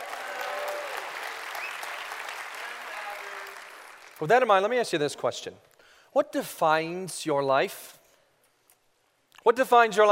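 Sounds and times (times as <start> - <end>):
audience applause: 0.0 - 4.4
speech: 4.2 - 8.0, 9.4 - 10.0.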